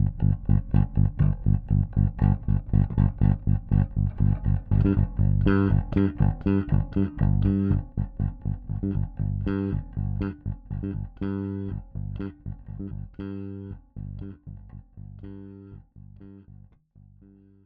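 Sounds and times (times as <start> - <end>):
bass jam: 0.0 - 17.6.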